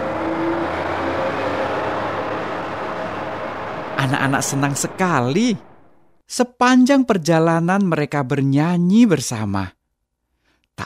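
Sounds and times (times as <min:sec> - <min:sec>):
heavy bus engine rumbling: 0:00.0 - 0:06.2
speech: 0:04.0 - 0:05.7, 0:06.3 - 0:09.8.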